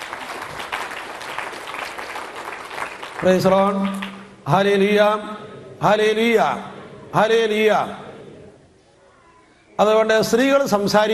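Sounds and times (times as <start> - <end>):
church congregation clapping their hands in praise: 0.0 - 4.4
speech: 3.2 - 8.1, 9.8 - 11.1.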